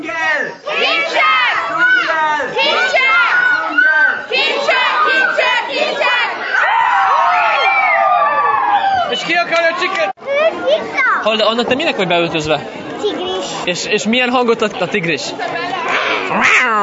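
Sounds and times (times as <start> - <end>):
children shouting at a jungle-themed party: 0.6 - 11.2
speech: 10.7 - 12.8, 13.6 - 15.7, 16.3 - 16.8.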